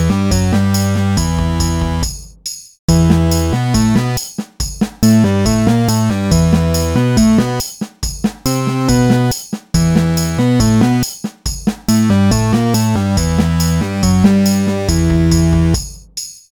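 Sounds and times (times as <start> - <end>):
video game music: 0.0 - 2.0, 2.9 - 4.2, 5.0 - 7.6, 8.5 - 11.0, 11.9 - 15.8.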